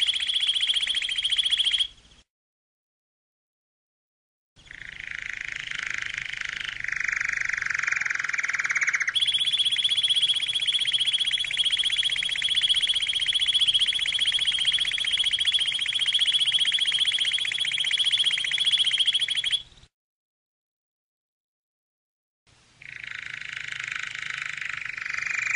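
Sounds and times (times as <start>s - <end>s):
canary singing: 0.0s - 2.0s, 4.6s - 19.9s, 22.8s - 25.5s.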